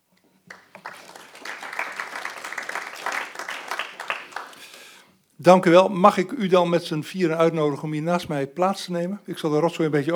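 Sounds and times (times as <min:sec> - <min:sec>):
modest applause from a council meeting audience: 0:00.5 - 0:05.0
speech: 0:05.4 - 0:10.1.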